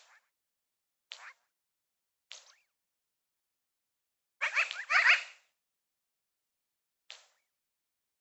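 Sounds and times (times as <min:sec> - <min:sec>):
magpie giving scratchy chirps: 0:04.4 - 0:05.3.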